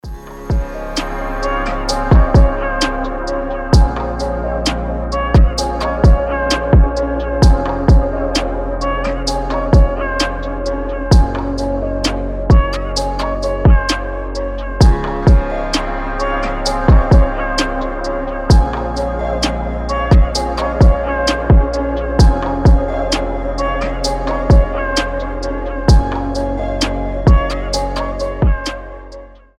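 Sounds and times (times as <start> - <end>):
instrumental type beat: 0.0 - 29.4.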